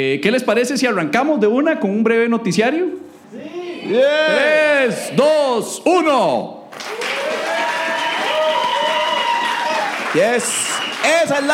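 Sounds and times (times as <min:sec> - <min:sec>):
speech: 0:00.0 - 0:07.0, 0:10.1 - 0:11.5
spontaneous audience applause: 0:06.7 - 0:11.5.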